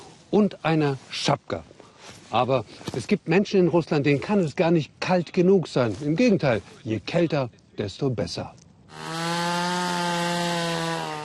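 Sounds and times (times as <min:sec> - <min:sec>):
speech: 0:00.3 - 0:01.7, 0:02.3 - 0:09.1
chainsaw cutting through ice: 0:08.9 - 0:11.2.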